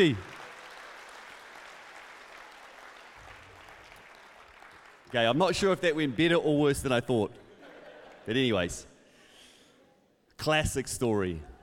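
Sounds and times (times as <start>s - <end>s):
speech: 0.0s - 0.3s, 5.1s - 7.4s, 8.2s - 8.9s, 10.4s - 11.5s
audience applause: 0.0s - 5.2s
laughter: 7.4s - 8.6s.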